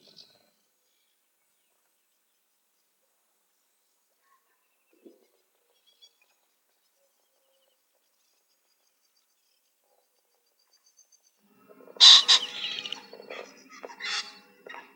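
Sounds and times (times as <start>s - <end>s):
common pheasant Phasianus colchicus harsh double call in Weinviertel Austria: 12.0s - 14.8s.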